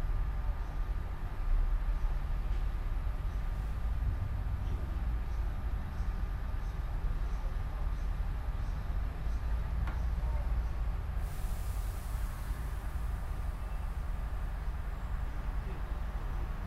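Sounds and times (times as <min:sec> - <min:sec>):
heavy low rumble: 0:00.2 - 0:16.6
faint hiss: 0:11.1 - 0:16.6.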